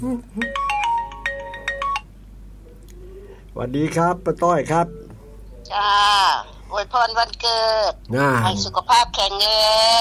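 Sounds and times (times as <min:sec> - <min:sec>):
speech: 0:00.0 - 0:00.6, 0:03.6 - 0:05.0, 0:05.7 - 0:09.9
low steady hum: 0:00.0 - 0:09.9
telephone ringing with an incoming call, electronic melody: 0:00.4 - 0:02.1.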